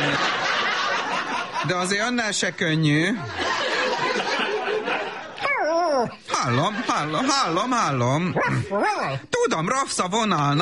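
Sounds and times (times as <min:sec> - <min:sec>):
people laughing: 0:00.0 - 0:02.0, 0:03.1 - 0:08.8
speech: 0:01.7 - 0:03.4, 0:06.0 - 0:10.6
terrier barking: 0:08.4 - 0:09.2.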